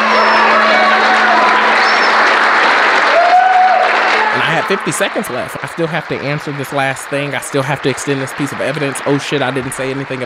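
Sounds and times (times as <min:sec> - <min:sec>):
faint whistles and cheers: 0:00.0 - 0:05.2
large crowd applauding: 0:00.0 - 0:10.2
laughter: 0:04.1 - 0:10.2
speech: 0:04.7 - 0:10.2.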